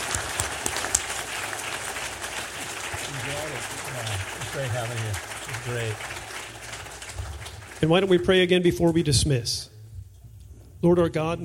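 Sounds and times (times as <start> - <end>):
applause: 0.0 - 8.6
speech: 4.6 - 6.2, 7.8 - 9.7, 10.8 - 11.4.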